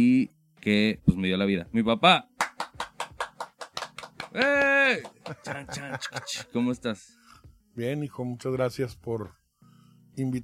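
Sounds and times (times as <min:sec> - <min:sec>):
speech: 0:00.0 - 0:02.4, 0:04.4 - 0:07.2, 0:07.8 - 0:09.4, 0:10.2 - 0:10.4
sharp evenly spaced claps: 0:02.4 - 0:05.9
laughter: 0:04.4 - 0:06.6.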